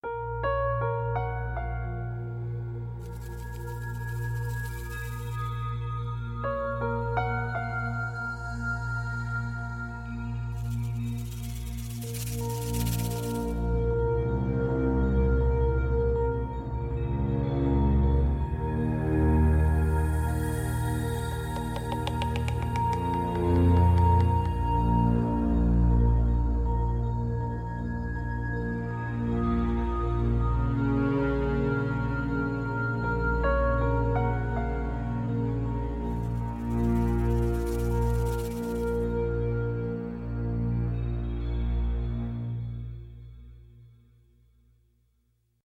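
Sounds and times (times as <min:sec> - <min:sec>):
suspense music: 0:00.1 - 0:44.0.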